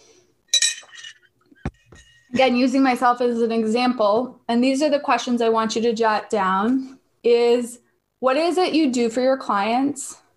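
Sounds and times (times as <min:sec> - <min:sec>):
glass clinking while drinking water: 0:00.5 - 0:02.3
speech: 0:02.3 - 0:10.2.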